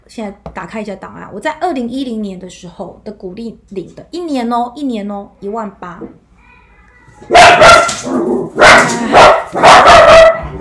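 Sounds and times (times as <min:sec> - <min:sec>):
speech: 0:00.1 - 0:06.2, 0:07.2 - 0:10.5
dogs barking: 0:07.3 - 0:10.5.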